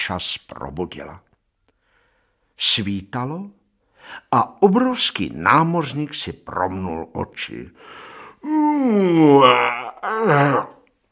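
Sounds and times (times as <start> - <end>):
speech: 0.1 - 1.3, 2.6 - 10.8
loud yawn: 8.2 - 10.9
stretching groan: 8.4 - 10.9.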